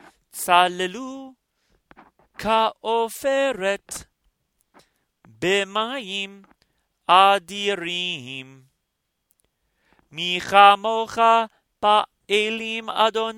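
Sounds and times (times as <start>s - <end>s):
Torah portion chanting: 0.0s - 1.4s, 2.3s - 4.1s, 5.3s - 8.7s, 10.1s - 13.3s.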